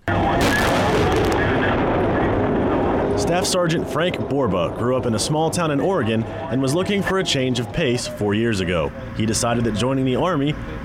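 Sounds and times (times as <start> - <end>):
multiple launch rocket system artillery firing during an Army live-fire exercise at Rocket Valley: 0.1 - 4.1
speech: 3.3 - 10.8.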